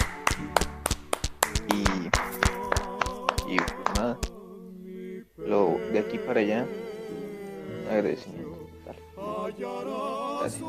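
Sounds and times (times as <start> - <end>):
hand claps in rhythm: 0.0 - 4.4
speech: 6.3 - 6.8, 7.9 - 10.6.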